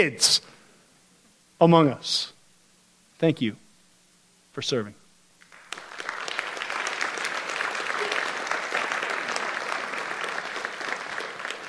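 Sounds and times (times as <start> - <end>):
speech: 0.0 - 0.5, 1.6 - 2.4, 3.2 - 3.6, 4.6 - 5.0
audience clapping: 5.4 - 11.6.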